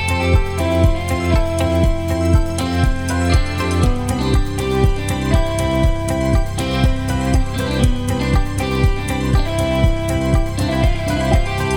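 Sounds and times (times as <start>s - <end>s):
corporate ad music with guitar: 0.0s - 11.7s.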